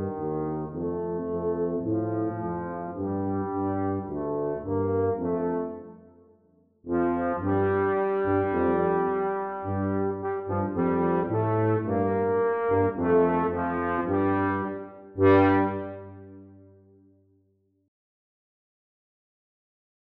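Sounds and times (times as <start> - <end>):
trombone: 0.0 - 5.9, 6.9 - 16.6
tuba: 0.0 - 17.1.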